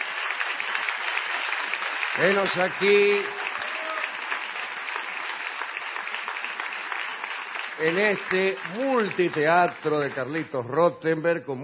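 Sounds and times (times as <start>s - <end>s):
audience applause in a theatre: 0.0s - 10.7s
speech: 2.2s - 3.5s, 7.8s - 11.6s.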